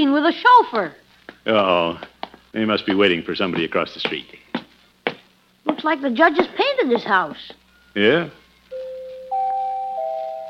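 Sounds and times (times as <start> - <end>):
speech: 0.0 - 4.4, 5.6 - 8.4
doorbell chime: 8.7 - 10.4.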